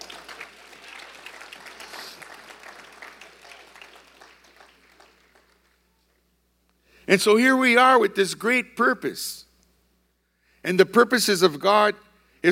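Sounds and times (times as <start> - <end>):
audience applause: 0.0 - 6.0
speech: 7.1 - 9.5, 10.6 - 12.4.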